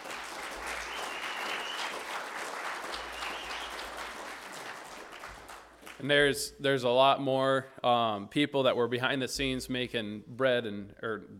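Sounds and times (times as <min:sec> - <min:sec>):
round of applause: 0:00.0 - 0:06.1
speech: 0:06.0 - 0:11.3.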